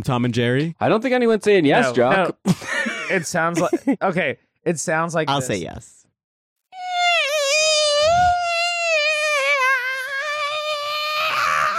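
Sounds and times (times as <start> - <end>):
speech: 0.0 - 6.0
voice imitating a loud mosquito whine: 6.8 - 11.7.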